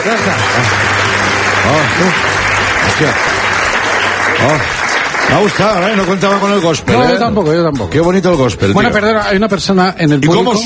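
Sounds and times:
speech: 0.0 - 0.9, 1.6 - 3.4, 4.3 - 10.6
audience clapping: 0.0 - 7.0.

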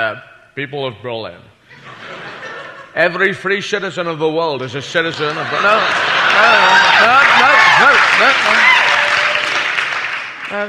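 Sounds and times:
speech: 0.0 - 2.2, 3.0 - 8.8, 10.5 - 10.6
laughter: 1.7 - 3.2, 4.6 - 9.4
crowd applauding: 5.1 - 10.6.

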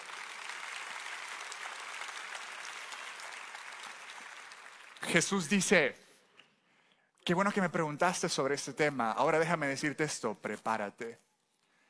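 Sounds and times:
audience applause: 0.0 - 5.4
speech: 5.0 - 6.0, 7.2 - 11.3.

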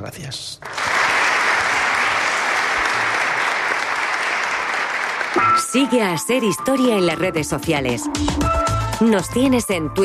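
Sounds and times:
speech: 0.0 - 0.8, 5.6 - 10.0
crowd applause: 0.6 - 5.5.

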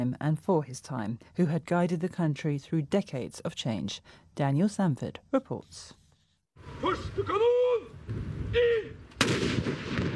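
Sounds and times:
speech: 0.0 - 6.0, 6.6 - 9.8
cannons firing a salute over Oslo: 9.2 - 10.1.

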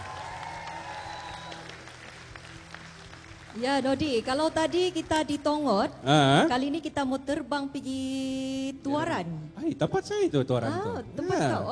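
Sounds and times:
audience applause: 0.0 - 3.8
speech: 3.6 - 11.7.

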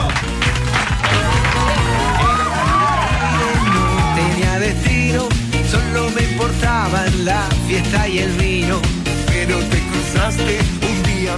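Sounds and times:
audience applauding and cheering: 0.0 - 5.0
loud rhythmic music with a heavy beat and melody: 0.0 - 11.3.

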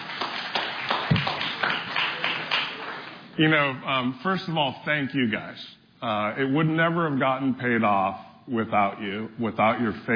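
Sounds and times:
audience clapping: 0.0 - 3.4
speech: 3.4 - 10.1.

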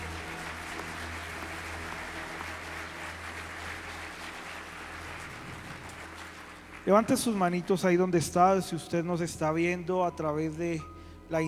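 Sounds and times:
audience applause: 0.0 - 8.6
speech: 6.8 - 11.4.

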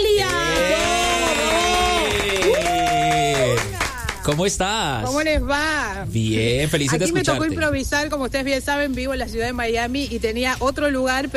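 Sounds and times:
audience applause: 0.0 - 4.6
speech: 4.3 - 11.3.

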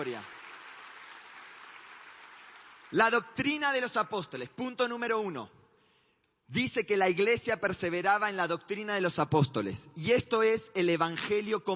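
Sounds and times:
audience applause: 0.0 - 3.0
speech: 2.9 - 5.6, 6.5 - 11.7.

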